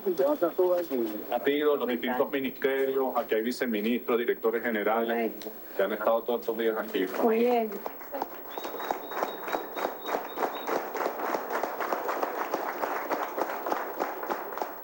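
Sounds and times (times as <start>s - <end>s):
speech: 0.0s - 8.2s
crowd applauding: 7.6s - 14.8s
faint high whistle-like tone: 8.5s - 11.0s.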